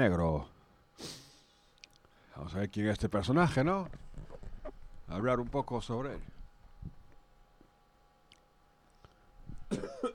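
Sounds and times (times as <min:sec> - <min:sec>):
speech: 0:00.0 - 0:01.2, 0:02.4 - 0:04.4, 0:05.1 - 0:07.0, 0:09.7 - 0:10.1
person coughing: 0:09.7 - 0:10.1.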